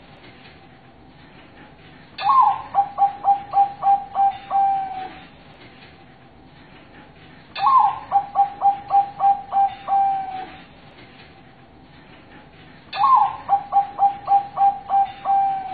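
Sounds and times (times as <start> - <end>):
zebra dove cooing master song: 2.2 - 5.2, 7.6 - 10.6, 13.0 - 15.7.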